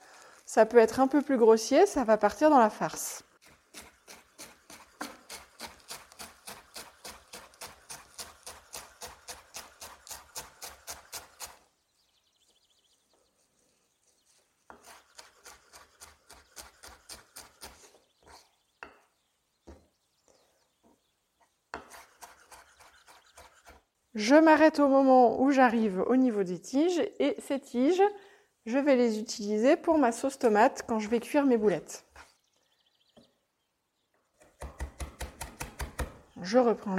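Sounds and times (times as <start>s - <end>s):
speech: 0.5s - 3.3s, 24.2s - 32.1s, 36.4s - 36.9s
knife finely chopping parsley: 3.5s - 11.6s, 21.7s - 23.8s, 34.4s - 36.2s.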